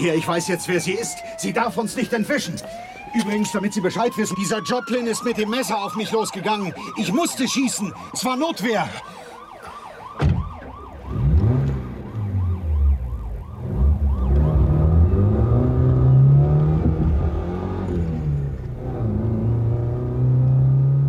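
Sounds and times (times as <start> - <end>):
speech: 0.0 - 9.2
wailing siren: 0.0 - 21.0
car engine revving and accelerating on an open road: 11.1 - 12.8, 13.6 - 21.0.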